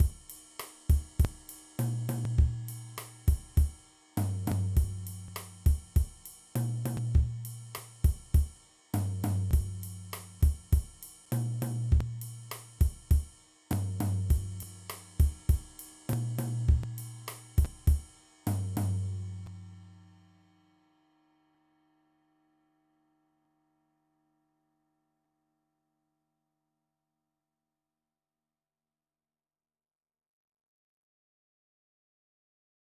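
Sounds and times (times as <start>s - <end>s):
mambo drum beat: 0.0s - 19.5s.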